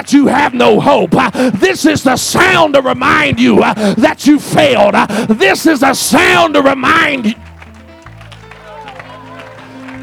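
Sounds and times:
hands clapping: 0.0 - 3.7, 6.2 - 10.0
speech: 0.0 - 7.5.

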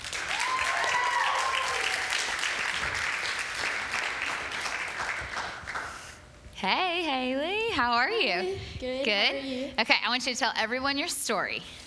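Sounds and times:
audience applause: 0.0 - 6.0
speech: 6.6 - 11.8.

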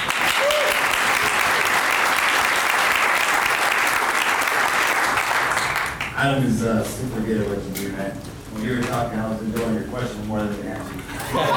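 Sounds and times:
audience round of applause: 0.0 - 6.2
speech: 6.2 - 11.5
laughter: 11.0 - 11.5.

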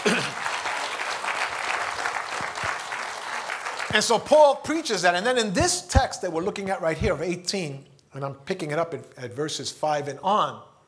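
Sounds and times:
crowd clapping: 0.0 - 4.6
speech: 3.9 - 10.7.

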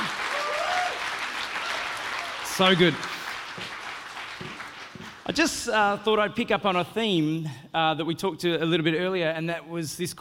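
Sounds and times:
audience applause: 0.0 - 5.5
speech: 2.6 - 3.7, 5.4 - 10.2.

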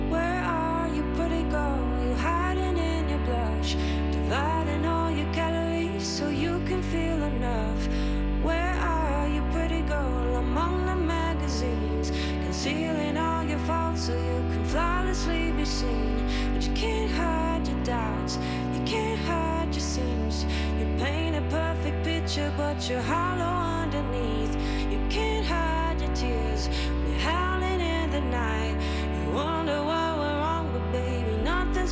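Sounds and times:
pop song with sung vocal and distorted instrumentation: 0.1 - 31.9.

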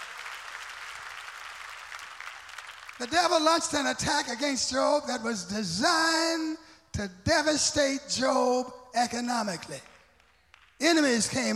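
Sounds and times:
audience clapping hands: 0.0 - 3.7, 9.6 - 11.5
speech: 3.0 - 9.9, 10.8 - 11.5.

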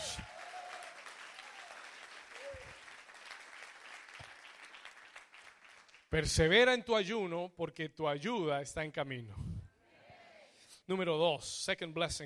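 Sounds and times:
audience applause: 0.0 - 6.1
speech: 6.1 - 9.5, 10.9 - 12.2.

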